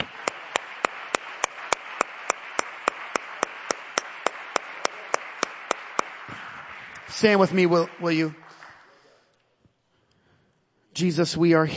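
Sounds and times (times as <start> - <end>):
audience clapping hands: 0.0 - 9.4
speech: 7.2 - 8.4, 11.0 - 11.7.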